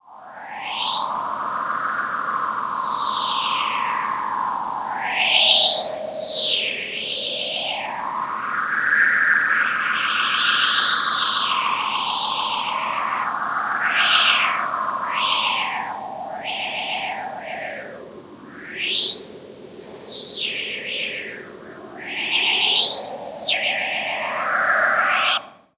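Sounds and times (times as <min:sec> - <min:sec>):
wind: 0:00.0 - 0:25.7.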